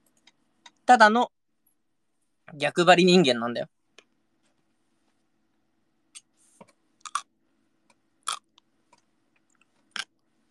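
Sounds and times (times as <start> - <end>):
speech: 0.9 - 1.4, 2.5 - 3.8
crunchy chewing of Japanese pickles (tsukemono): 7.0 - 7.3, 8.2 - 10.2.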